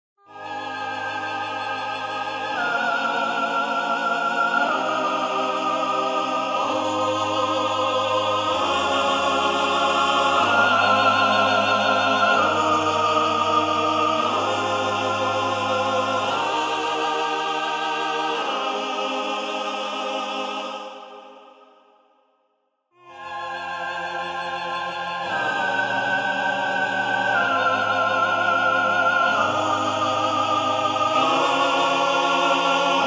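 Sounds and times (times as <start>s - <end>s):
contrapuntal music: 0.3s - 20.8s, 23.1s - 33.0s.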